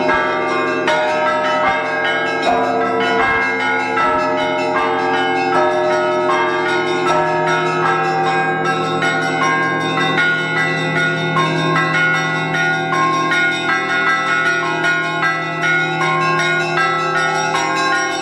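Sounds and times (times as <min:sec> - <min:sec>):
Easter bells ringing: 0:00.0 - 0:18.2.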